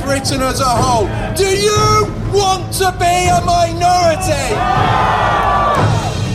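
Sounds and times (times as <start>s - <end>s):
speech: 0.1s - 5.9s
crowd roar at a demonstration in Cannock: 4.2s - 6.2s.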